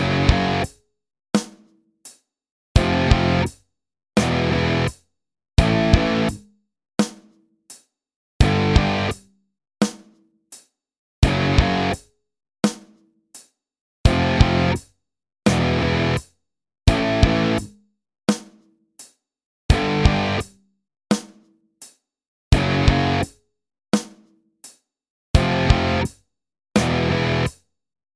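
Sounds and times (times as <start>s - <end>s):
drums: 0.0s - 0.8s, 1.4s - 2.2s, 2.8s - 3.6s, 4.2s - 5.0s, 5.6s - 13.5s, 14.1s - 14.9s, 15.5s - 16.3s, 16.9s - 23.4s, 24.0s - 24.8s, 25.4s - 26.2s, 26.8s - 27.6s.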